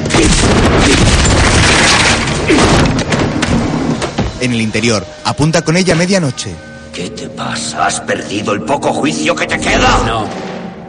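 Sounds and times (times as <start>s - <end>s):
gunshot fired at a door: 0.0s - 3.6s
speech: 4.4s - 10.5s.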